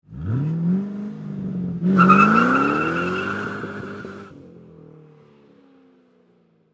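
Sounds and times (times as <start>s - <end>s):
Ford Mustang driving away fast: 0.1s - 4.4s
Ford Mustang tires squealing: 1.9s - 4.3s.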